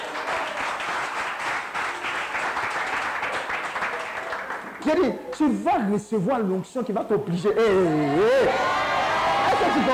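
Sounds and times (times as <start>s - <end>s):
congregation applauding: 0.0s - 5.1s, 9.1s - 9.9s
speech: 4.8s - 8.8s, 9.8s - 9.9s.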